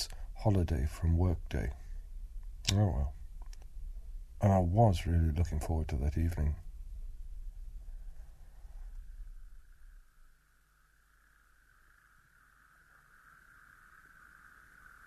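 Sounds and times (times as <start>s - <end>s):
low wind rumble: 0.0s - 10.1s
speech: 0.4s - 1.8s, 2.7s - 3.2s, 4.4s - 6.6s
chorus of toads trilling from a pond: 9.4s - 15.0s.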